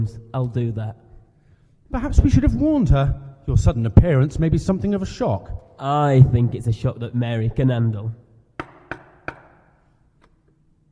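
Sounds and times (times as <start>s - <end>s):
speech: 0.0s - 1.0s, 1.9s - 8.2s
knocking on a door: 8.6s - 9.7s.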